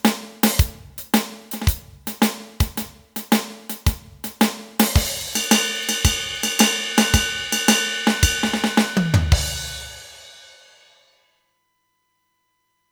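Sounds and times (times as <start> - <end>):
music beat: 0.0 - 10.0.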